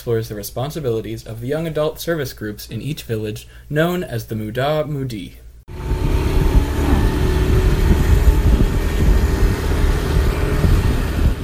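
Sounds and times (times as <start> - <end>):
speech: 0.0 - 5.4
fleet of mopeds arriving and parking: 5.7 - 11.4.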